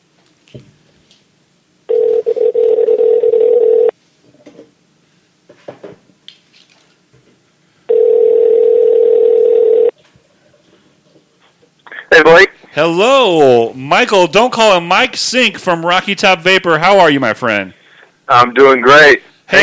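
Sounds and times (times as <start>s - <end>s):
speech: 0.5s - 0.7s, 12.4s - 19.6s
telephone ringing on outgoing call: 1.9s - 3.9s, 7.9s - 9.9s.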